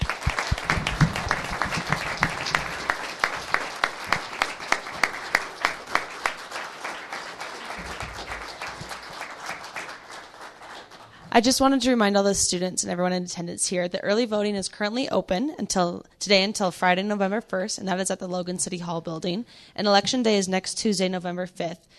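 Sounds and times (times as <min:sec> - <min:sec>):
round of applause: 0:00.0 - 0:11.3
speech: 0:11.4 - 0:21.9.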